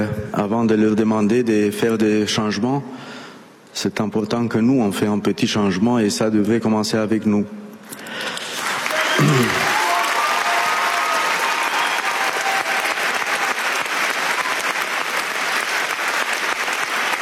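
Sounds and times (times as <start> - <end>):
speech: 0.5 - 3.1, 3.8 - 8.4, 9.2 - 9.6
audience applause: 8.2 - 17.2.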